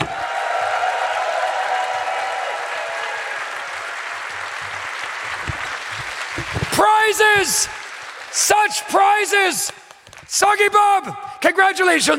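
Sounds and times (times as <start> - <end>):
audience applause: 0.0 - 10.3
speech: 6.8 - 12.1.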